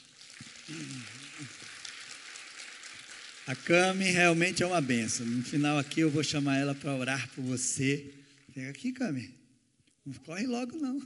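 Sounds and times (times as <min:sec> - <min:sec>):
audience applause: 0:00.6 - 0:07.5
speech: 0:00.7 - 0:01.6, 0:03.5 - 0:09.4, 0:10.0 - 0:11.0.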